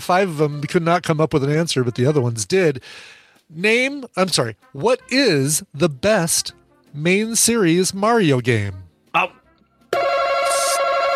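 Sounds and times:
speech: 0:00.0 - 0:09.4
game buzzer buzzing: 0:09.9 - 0:11.1.

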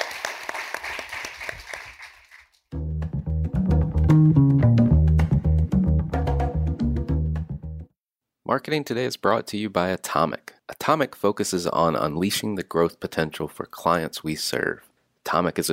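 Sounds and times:
audience round of applause: 0:00.0 - 0:02.4
loud steady music: 0:02.8 - 0:07.9
speech: 0:04.1 - 0:04.4, 0:08.6 - 0:15.7.

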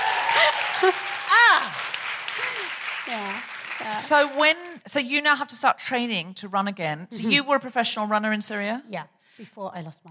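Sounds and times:
audience applause: 0:00.0 - 0:04.8
speech: 0:00.8 - 0:01.8, 0:03.1 - 0:10.0.

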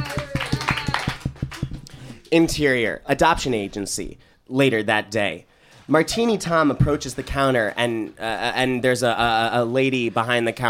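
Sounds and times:
hand clapping: 0:00.0 - 0:02.3
speech: 0:02.3 - 0:10.6.

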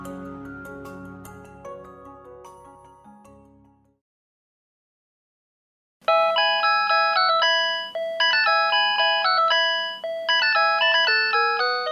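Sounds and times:
mobile phone ringtone playing synthesized classical melody: 0:06.1 - 0:11.9.

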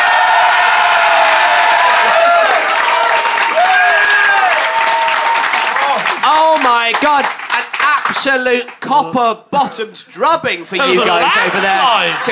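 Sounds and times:
audience applause: 0:00.0 - 0:08.8
speech: 0:08.1 - 0:12.3
laughter: 0:10.6 - 0:12.3.

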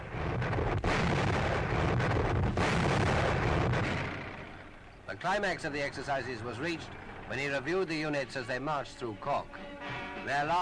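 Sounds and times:
massive coastal guns firing during military exercises in Ireland: 0:00.0 - 0:06.0
speech: 0:05.2 - 0:10.5.

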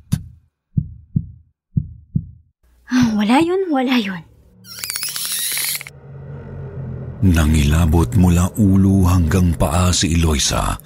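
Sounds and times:
pounding heartbeat sound effect: 0:00.0 - 0:02.5
speech: 0:02.9 - 0:04.3, 0:07.2 - 0:10.8.

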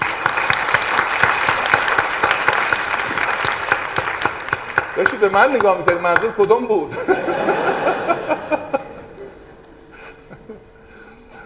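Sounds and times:
audience applauding at a motivational talk: 0:00.0 - 0:06.4
speech: 0:05.0 - 0:07.3
laughter: 0:06.9 - 0:11.1.

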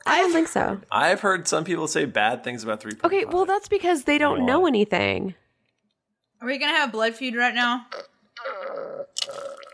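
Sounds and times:
speech: 0:00.1 - 0:05.4, 0:06.4 - 0:08.1, 0:09.2 - 0:09.6
person slurping a drink: 0:07.9 - 0:09.7.

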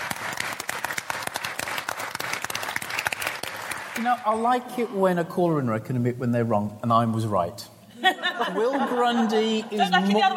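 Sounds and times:
audience applause: 0:00.0 - 0:04.1
speech: 0:04.0 - 0:10.3
laughter: 0:07.9 - 0:10.3.

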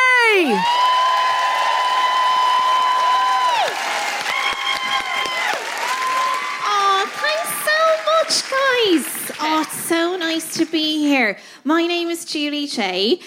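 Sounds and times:
speech: 0:00.4 - 0:00.8, 0:10.4 - 0:13.2
comedy gig audience clapping: 0:00.5 - 0:11.1.

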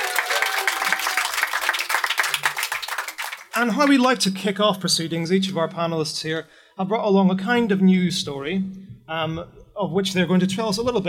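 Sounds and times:
audience applause in a festival tent at the Green Man Festival: 0:00.0 - 0:04.0
speech: 0:03.6 - 0:11.0.

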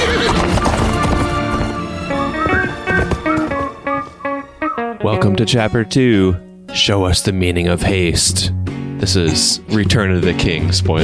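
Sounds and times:
Shadowfax horse hooves galloping: 0:00.0 - 0:04.8
speech: 0:05.0 - 0:11.0.

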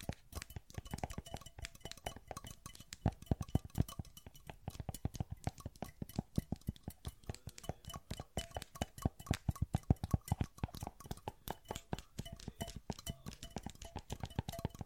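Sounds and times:
fingertips tapping on metal wood plastic and glass: 0:00.0 - 0:14.8.

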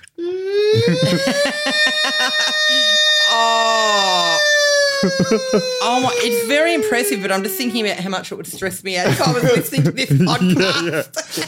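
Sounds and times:
person imitating an air horn: 0:00.0 - 0:08.1
laughter: 0:00.7 - 0:07.9, 0:09.0 - 0:11.4
speech: 0:00.8 - 0:04.1, 0:05.0 - 0:11.4.

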